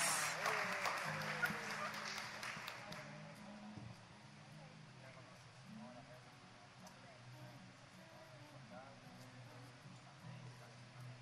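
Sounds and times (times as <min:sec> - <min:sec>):
crowd clapping: 0:00.0 - 0:03.3.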